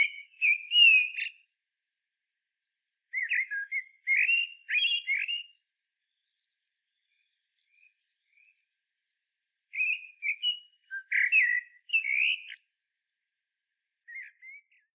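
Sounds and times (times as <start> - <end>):
common blackbird singing: 0.0 - 1.5, 3.1 - 5.6, 9.7 - 12.7, 14.1 - 14.9.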